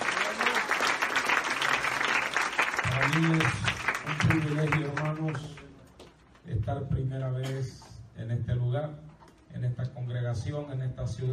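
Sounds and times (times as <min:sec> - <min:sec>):
church congregation applauding: 0:00.0 - 0:05.8
speech: 0:03.1 - 0:05.6, 0:06.5 - 0:11.3.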